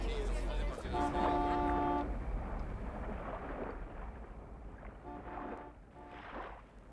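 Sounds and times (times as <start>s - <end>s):
wind rumbling: 0.1s - 6.9s
distant bus horn honking in Miramalfi: 0.9s - 2.2s, 5.0s - 6.4s.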